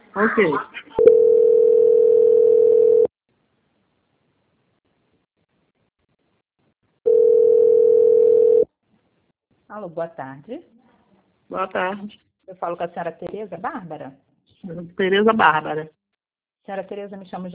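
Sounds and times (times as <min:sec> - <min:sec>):
speech: 0:00.2 - 0:00.8, 0:09.8 - 0:10.8, 0:11.5 - 0:16.0, 0:16.6 - 0:17.5
telephone line tone while a call is transferred: 0:01.0 - 0:03.1, 0:07.1 - 0:08.7.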